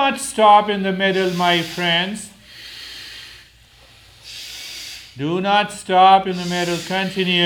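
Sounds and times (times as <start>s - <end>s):
speech: 0.1s - 2.3s, 5.2s - 7.4s
long hissing breath through right nostril: 1.1s - 5.2s, 6.3s - 7.4s.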